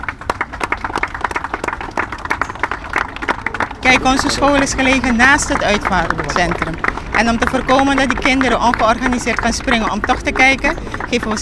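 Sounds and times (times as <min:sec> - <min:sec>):
schoolchildren applauding: 0:00.0 - 0:11.3
speech: 0:03.9 - 0:11.3.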